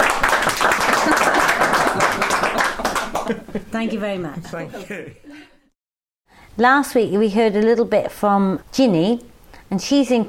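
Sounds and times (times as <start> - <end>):
round of applause: 0.0 - 3.4
laughter: 0.8 - 5.7
speech: 3.3 - 5.2, 6.6 - 10.2.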